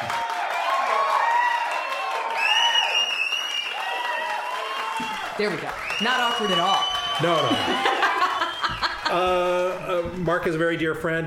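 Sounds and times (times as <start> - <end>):
applause sound effect: 0.0 - 9.2
crowd cheering: 0.0 - 10.3
rising whistle-like tones: 2.4 - 3.9, 5.8 - 8.9
speech: 5.0 - 8.0, 9.1 - 11.2
laughter: 7.2 - 10.0.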